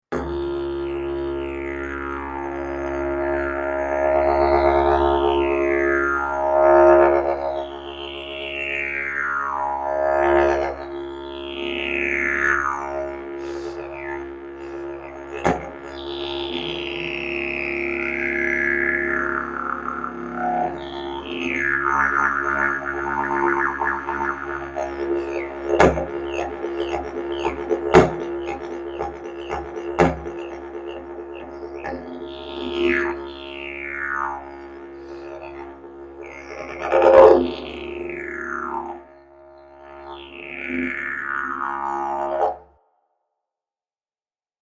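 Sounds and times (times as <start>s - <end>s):
didgeridoo: 0.0s - 42.8s.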